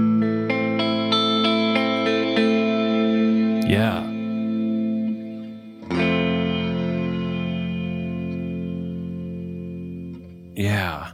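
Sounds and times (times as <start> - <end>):
electric guitar through Meris Mercury 7 and Old Blood Noise Endeavors Dark Star pedals: 0.0 - 11.1.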